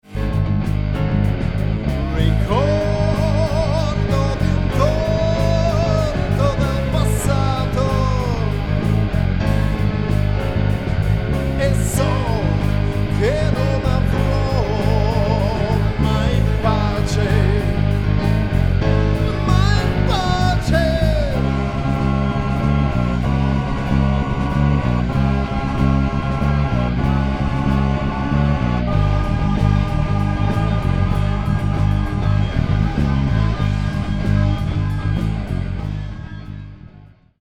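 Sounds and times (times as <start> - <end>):
song: 0.0 - 37.0.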